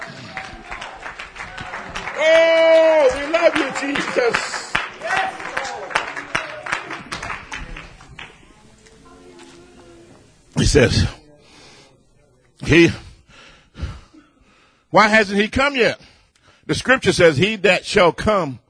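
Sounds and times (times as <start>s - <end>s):
audience clapping hands: 0.0s - 8.6s
speech: 2.2s - 2.6s, 3.4s - 4.6s, 10.7s - 11.2s, 12.7s - 13.0s, 14.9s - 16.0s, 16.7s - 18.6s.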